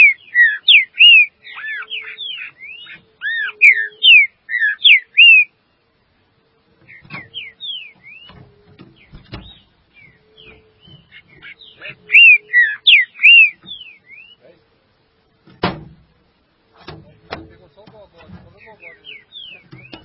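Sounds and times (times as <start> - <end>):
green-winged saltator song: 0.0 - 5.6, 6.9 - 14.4, 18.6 - 20.0.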